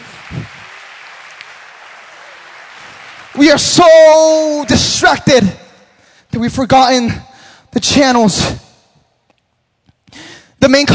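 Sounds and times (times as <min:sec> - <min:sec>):
audience round of applause: 0:00.0 - 0:04.7
speech: 0:03.4 - 0:05.6, 0:06.4 - 0:08.6, 0:10.1 - 0:10.9.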